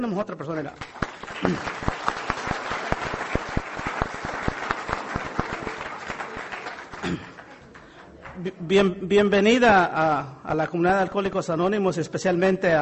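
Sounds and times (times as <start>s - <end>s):
speech: 0.0s - 2.1s, 8.4s - 12.8s
audience applause: 0.8s - 8.4s.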